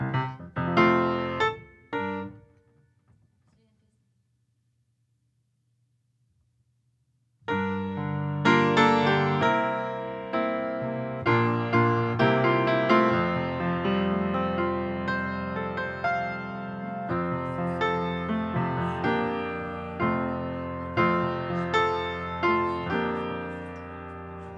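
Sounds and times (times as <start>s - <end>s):
piano: 0.0s - 2.9s, 7.4s - 24.5s.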